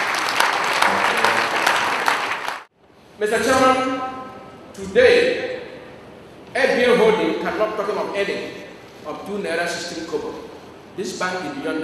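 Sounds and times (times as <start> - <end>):
crowd applauding: 0.0 - 2.7
speech: 3.2 - 4.2, 4.8 - 5.5, 6.6 - 11.8.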